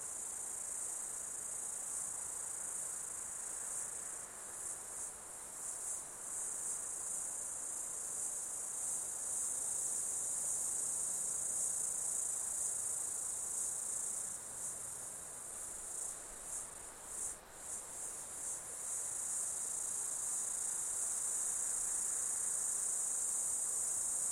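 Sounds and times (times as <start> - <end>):
insect chorus buzzing: 0.0 - 24.3.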